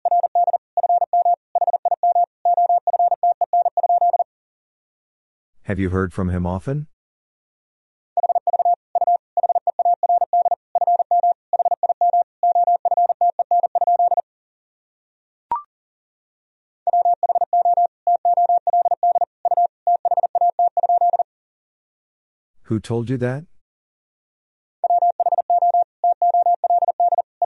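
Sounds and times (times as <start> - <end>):
fast Morse code tones: 0.0 - 4.2, 8.2 - 14.2, 16.9 - 21.2, 24.8 - 27.4
speech: 5.7 - 6.9, 22.7 - 23.5.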